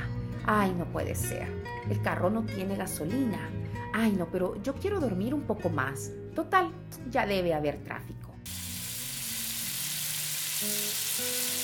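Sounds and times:
speech: 0.5 - 8.2
food frying in a pan: 8.5 - 11.6.

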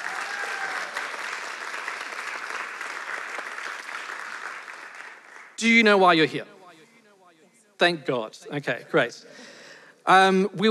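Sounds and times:
audience applause for debaters: 0.0 - 5.6
speech: 5.6 - 6.5, 7.8 - 9.5, 10.1 - 10.7.

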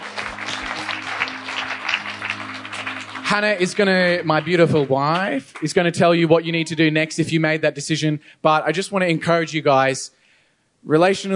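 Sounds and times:
audience applause: 0.0 - 6.0
speech: 3.3 - 10.2, 10.8 - 11.3.

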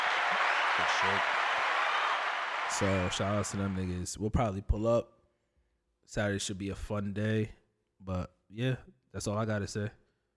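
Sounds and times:
applause with many hands clapping: 0.0 - 4.0
speech: 0.8 - 1.4, 2.7 - 5.2, 6.1 - 10.0.

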